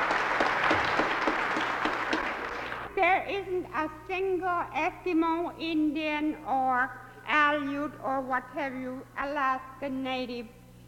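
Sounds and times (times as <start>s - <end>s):
audience clapping for Alaska Native dancers and singers: 0.0s - 2.9s
speech: 3.0s - 10.6s.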